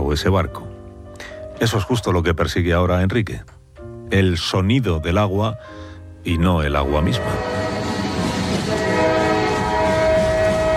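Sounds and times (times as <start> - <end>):
speech: 0.1 - 7.6
train running on rails: 7.2 - 10.7.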